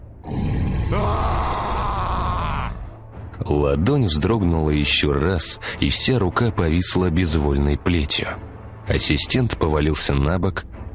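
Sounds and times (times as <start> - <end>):
inhuman growl: 0.2 - 2.9
dying scream: 0.3 - 3.0
speech: 3.4 - 10.8.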